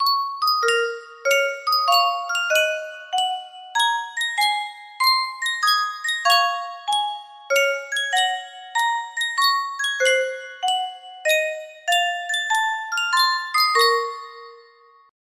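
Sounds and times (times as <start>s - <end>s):
Yunsheng custom tune music box: 0.0s - 15.1s.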